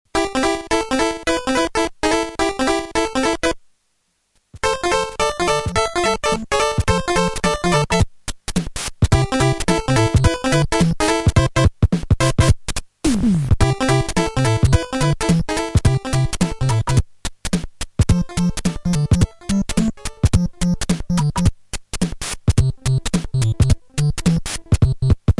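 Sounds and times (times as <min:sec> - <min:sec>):
NES chiptune game music: 0:00.1 - 0:03.6, 0:04.6 - 0:08.1, 0:09.1 - 0:12.6, 0:13.2 - 0:17.0, 0:18.1 - 0:21.5, 0:22.6 - 0:25.2.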